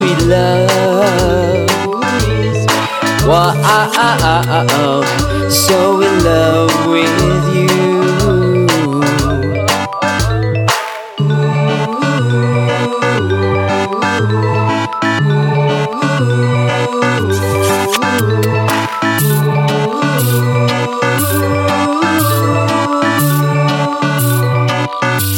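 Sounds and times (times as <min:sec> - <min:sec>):
Singaporean wa aa aa ao ringtone: 0:00.0 - 0:25.3.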